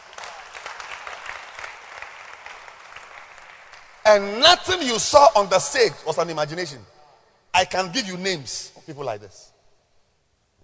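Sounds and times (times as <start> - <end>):
audience clapping hands: 0.0 - 4.0
speech: 4.1 - 6.9, 7.6 - 9.5.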